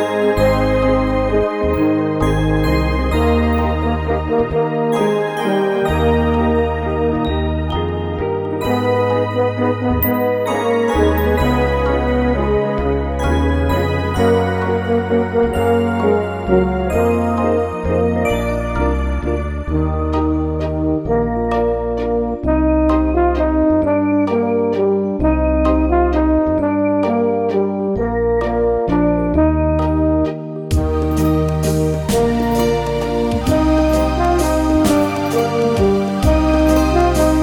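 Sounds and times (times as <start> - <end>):
alto in Eb major: 0.0 - 37.4.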